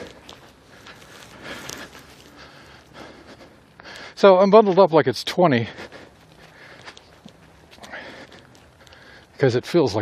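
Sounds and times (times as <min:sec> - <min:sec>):
footsteps walking outdoors on a cold, overcast day: 0:00.0 - 0:10.0
speech: 0:04.2 - 0:05.9, 0:09.4 - 0:10.0.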